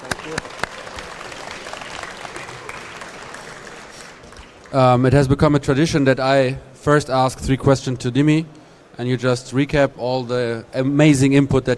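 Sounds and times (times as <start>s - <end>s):
audience applause: 0.0s - 4.8s
speech: 4.7s - 11.7s.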